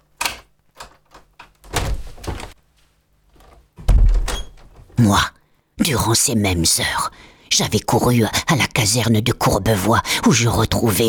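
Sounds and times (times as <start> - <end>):
door thudding: 1.6 - 2.6, 3.8 - 4.9
speech: 5.0 - 11.0.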